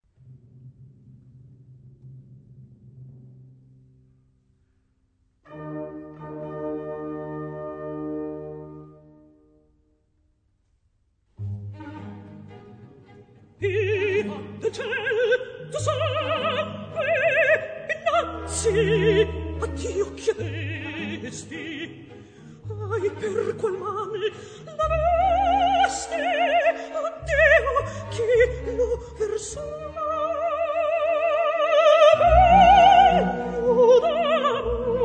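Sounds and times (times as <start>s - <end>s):
lyric mezzo-soprano singing: 13.5s - 35.0s.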